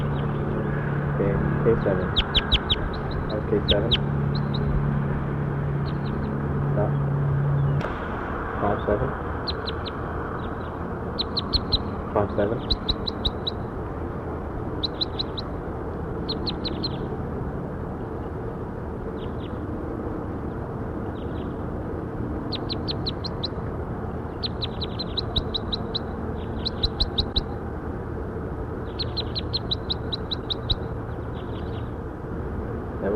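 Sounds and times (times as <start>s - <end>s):
recorded bird chirping: 0.0s - 4.8s, 5.7s - 7.9s, 9.4s - 13.7s, 14.7s - 15.6s, 16.2s - 17.1s, 19.1s - 19.6s, 20.5s - 21.6s, 22.4s - 27.6s, 28.8s - 32.0s
low rumbling hum: 0.0s - 33.1s
speech: 1.2s - 2.5s, 3.3s - 4.2s, 8.6s - 9.3s, 12.2s - 13.0s.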